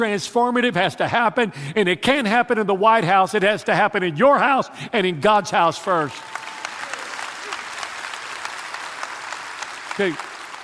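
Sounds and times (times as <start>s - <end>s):
speech: 0.0s - 6.4s, 10.0s - 10.3s
audience clapping: 5.9s - 10.6s.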